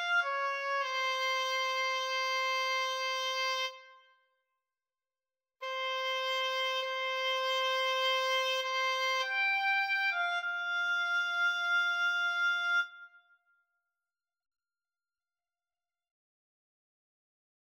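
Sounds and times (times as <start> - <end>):
oboe duet: 0.0 - 3.8, 5.6 - 13.0.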